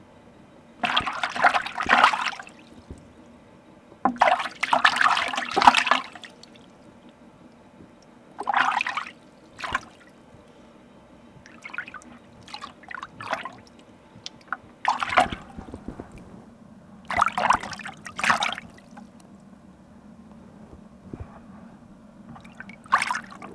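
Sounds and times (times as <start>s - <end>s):
washing raw material: 0.8s - 3.0s, 4.1s - 6.7s, 8.4s - 10.1s, 11.5s - 16.2s, 17.0s - 19.2s, 22.3s - 23.5s.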